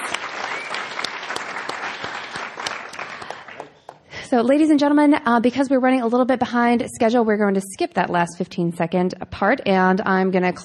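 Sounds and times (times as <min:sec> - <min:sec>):
audience applause: 0:00.0 - 0:04.0
speech: 0:04.3 - 0:10.6.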